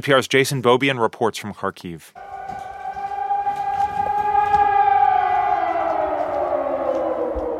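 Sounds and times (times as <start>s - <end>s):
speech: 0.0s - 2.6s
air raid siren wailing: 2.2s - 7.5s.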